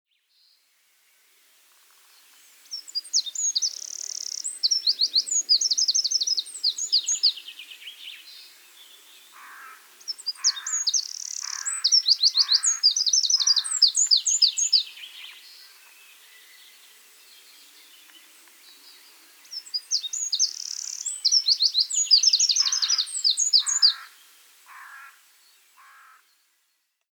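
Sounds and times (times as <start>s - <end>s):
Eurasian wren singing: 2.7s - 16.8s, 17.5s - 24.9s.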